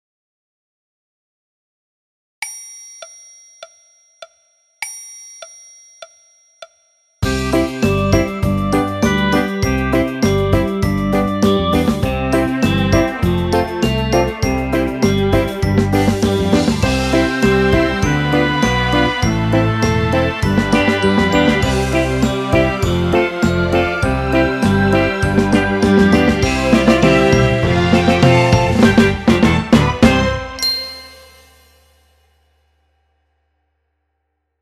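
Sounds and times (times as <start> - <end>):
orchestra: 7.2 - 31.5.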